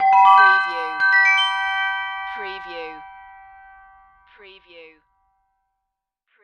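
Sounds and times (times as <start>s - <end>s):
multimedia chime: 0.0s - 4.5s.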